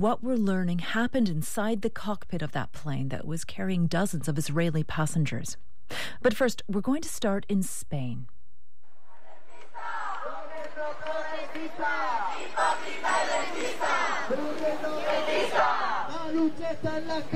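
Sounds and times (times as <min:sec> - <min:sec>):
speech: 0:00.0 - 0:08.4, 0:10.9 - 0:17.3
noisy street protest demonstration in Madrid: 0:09.1 - 0:17.3.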